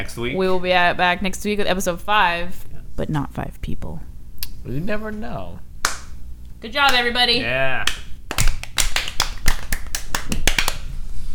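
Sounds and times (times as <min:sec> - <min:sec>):
speech: 0:00.0 - 0:05.7, 0:06.6 - 0:08.0
double hand clap: 0:05.8 - 0:06.2, 0:06.9 - 0:07.2, 0:07.8 - 0:10.9.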